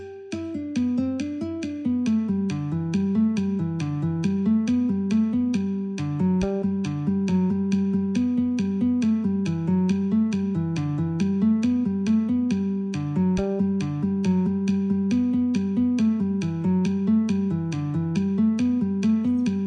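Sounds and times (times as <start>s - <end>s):
guitar playing in G: 0.0s - 19.6s
metronome ticking at 69: 0.0s - 19.6s.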